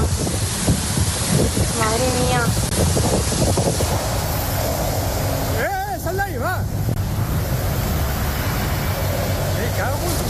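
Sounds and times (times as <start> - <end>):
storm winds up to 150 km per hour: 0.0 - 10.2.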